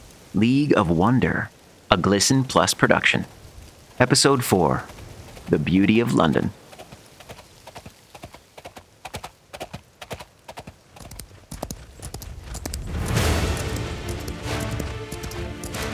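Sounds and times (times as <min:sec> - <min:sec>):
speech: 0:00.3 - 0:03.4, 0:04.0 - 0:06.6
whooshing wind-like noise: 0:03.2 - 0:15.9
horse galloping hooves: 0:03.6 - 0:15.9.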